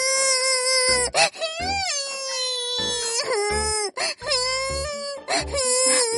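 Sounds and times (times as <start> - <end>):
little girl with a high fever crying at a hospital, afraid of an injection: 0.0 - 6.1.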